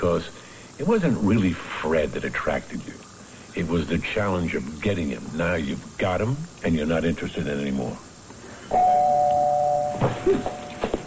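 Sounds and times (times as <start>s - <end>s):
speech: 0.0s - 8.1s, 8.7s - 9.1s, 10.2s - 10.6s
doorbell ringing: 8.7s - 11.0s.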